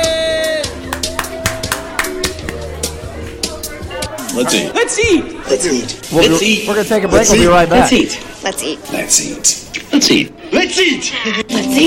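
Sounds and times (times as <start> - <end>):
audience applauding a guest: 0.8 - 2.9
speech: 4.4 - 11.8.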